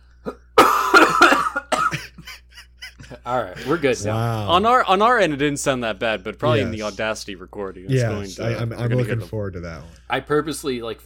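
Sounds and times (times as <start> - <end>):
person coughing: 0.2 - 2.4
speech: 3.3 - 11.0.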